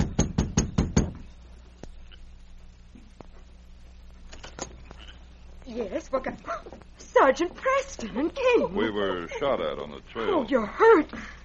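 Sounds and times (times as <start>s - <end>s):
knocking on a cabin door: 0.0s - 1.3s
speech: 5.8s - 11.4s.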